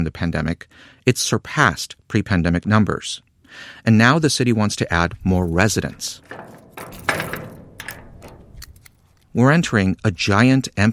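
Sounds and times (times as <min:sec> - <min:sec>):
speech: 0:00.0 - 0:07.0, 0:09.3 - 0:10.9
faint metal rattle: 0:04.9 - 0:09.8
heavy metal doors of an empty concrete and brick building unlocking: 0:05.2 - 0:09.4.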